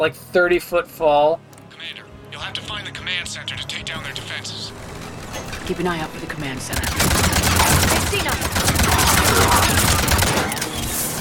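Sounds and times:
speech: 0:00.0 - 0:10.6
video game rapid gunfire shooting through the floor: 0:04.8 - 0:11.1.

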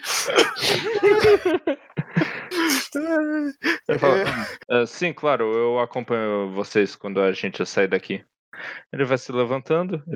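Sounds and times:
man coughing: 0:00.0 - 0:01.6, 0:02.5 - 0:04.6
speech: 0:00.3 - 0:02.0, 0:03.0 - 0:10.1
laughter: 0:00.4 - 0:02.4, 0:03.6 - 0:04.6
man groaning: 0:02.5 - 0:04.6.

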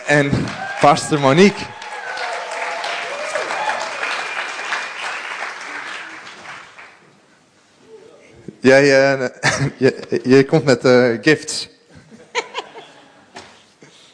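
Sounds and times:
crowd applauding: 0:00.0 - 0:07.0
speech: 0:00.1 - 0:01.8, 0:08.6 - 0:11.7
laughter: 0:12.0 - 0:13.4.

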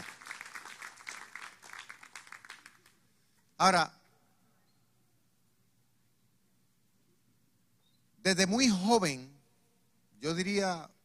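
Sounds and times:
audience applauding: 0:00.0 - 0:03.0
speech: 0:03.6 - 0:04.0, 0:08.3 - 0:09.4, 0:10.2 - 0:11.0.

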